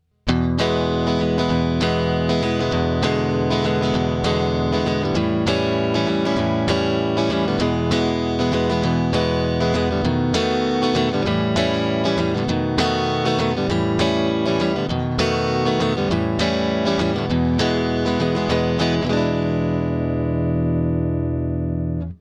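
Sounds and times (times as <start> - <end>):
blues prog music: 0.3 - 22.2.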